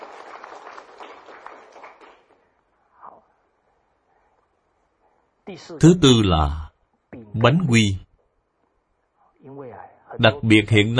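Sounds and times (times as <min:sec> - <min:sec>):
audience applause: 0:00.0 - 0:02.5
speech: 0:05.5 - 0:06.6, 0:07.4 - 0:08.0, 0:10.2 - 0:10.9.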